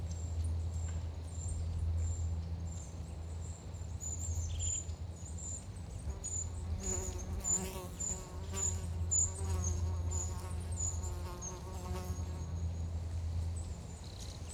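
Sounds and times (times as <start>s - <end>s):
wind in a forest: 0.0s - 14.5s
insect in a forest: 6.1s - 12.6s.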